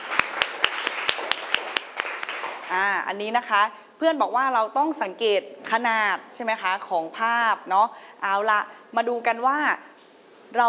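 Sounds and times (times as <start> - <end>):
students clapping hands: 0.0 - 2.9
speech: 2.7 - 9.9.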